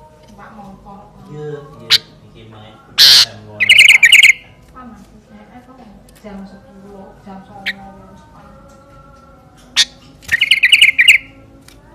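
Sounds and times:
sooty-headed bulbul singing: 3.0 - 4.6, 7.5 - 11.5.

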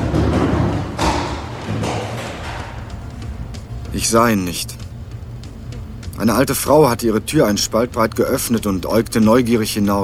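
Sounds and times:
young man's heavy running footsteps thumping down a staircase: 0.0 - 3.8
speech: 3.9 - 4.8, 6.2 - 10.0.

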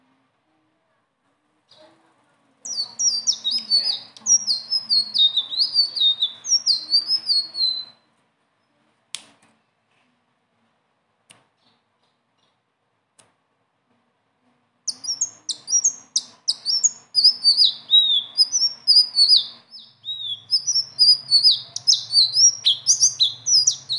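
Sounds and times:
leafbird singing: 2.6 - 8.0, 14.9 - 23.9.

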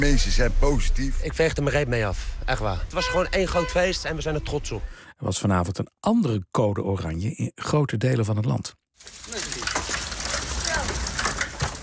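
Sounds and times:
speech: 0.0 - 9.5
hailstones as large as ping-pong balls drumming on surfaces in Loosduinen: 9.0 - 11.8.

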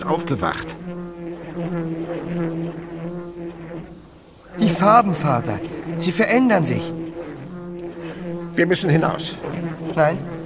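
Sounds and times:
speech: 0.0 - 0.9, 4.8 - 7.0, 8.6 - 10.4
dragonfly buzzing as it wakes and stretches: 0.0 - 10.4.

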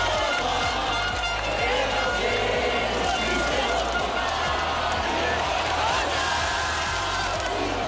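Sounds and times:
crowd of fans singing on the Place de la Concorde: 0.0 - 7.8.

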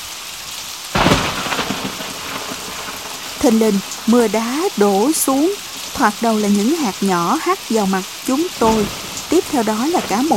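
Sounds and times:
thunder: 0.9 - 4.2, 8.5 - 10.3
speech: 3.4 - 10.3.

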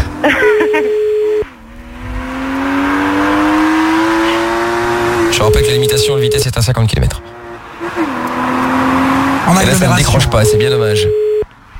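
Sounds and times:
car engine starting and revving: 0.0 - 11.3
speech: 6.0 - 7.1, 9.6 - 11.3.

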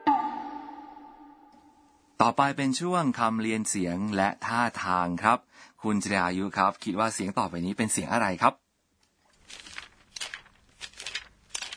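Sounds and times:
speech: 2.2 - 8.6
book pages flipping rapidly: 9.2 - 11.7.

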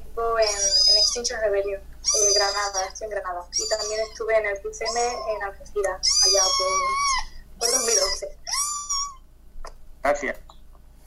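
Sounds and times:
small kitten meowing: 0.4 - 1.3, 2.0 - 9.2
speech: 1.2 - 8.4, 10.0 - 10.4.

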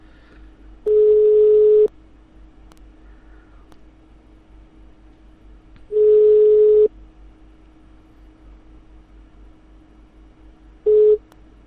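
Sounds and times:
faint low hum: 0.0 - 11.6
telephone ringback tone on an unanswered call: 0.9 - 1.9, 6.0 - 6.9, 10.9 - 11.2.

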